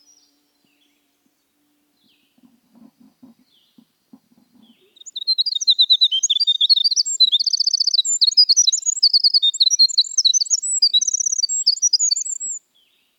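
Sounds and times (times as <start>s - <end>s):
winter wren singing rapid high trills and twitters: 4.3s - 12.6s.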